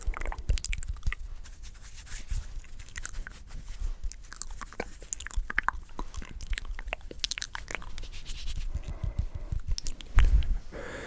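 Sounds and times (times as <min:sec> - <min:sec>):
close-miked wet mouth clicks and crunchy snaps: 0:00.0 - 0:01.3, 0:02.6 - 0:03.4, 0:04.0 - 0:10.5.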